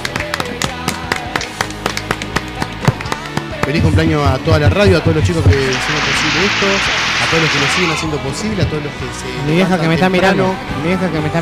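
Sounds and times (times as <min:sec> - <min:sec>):
scattered hand claps: 0:00.0 - 0:05.0
speech: 0:03.7 - 0:11.4.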